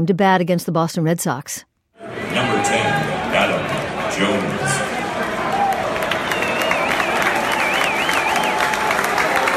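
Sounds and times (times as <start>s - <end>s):
speech: 0.0s - 4.9s
large stadium crowd applause and cheering: 2.0s - 9.5s
wavering high whistle: 6.2s - 8.7s.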